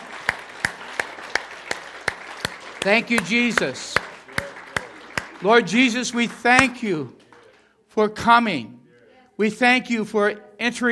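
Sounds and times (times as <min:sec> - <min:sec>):
audience clapping in rhythm: 0:00.0 - 0:07.8
speech: 0:02.8 - 0:04.0, 0:05.4 - 0:07.2, 0:08.0 - 0:08.8, 0:09.4 - 0:10.9.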